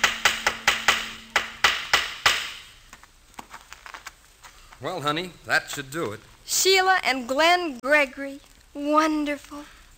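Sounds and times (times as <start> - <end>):
hammer nailing up a sign outside a house: 0.0 - 2.9
speech: 4.8 - 9.8.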